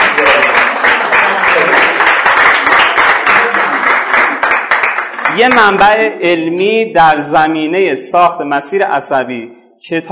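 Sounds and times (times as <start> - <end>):
audience applause: 0.0 - 5.8
speech: 5.4 - 10.1.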